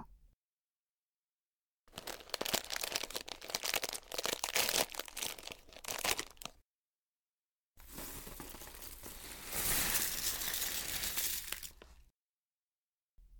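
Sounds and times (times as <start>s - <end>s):
crinkly bag rustling: 1.9s - 6.5s, 7.8s - 12.0s
dry dog kibble pouring onto a plate: 7.8s - 11.9s.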